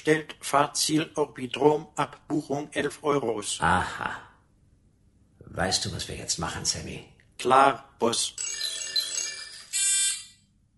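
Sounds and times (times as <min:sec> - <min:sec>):
speech: 0:00.0 - 0:04.3, 0:05.5 - 0:08.8
doorbell ringing: 0:08.4 - 0:10.4.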